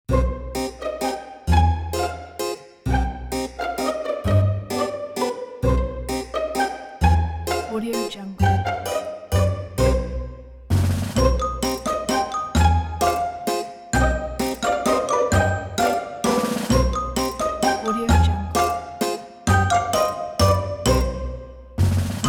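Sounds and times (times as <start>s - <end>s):
spooky fun Halloween music: 0.1s - 22.2s.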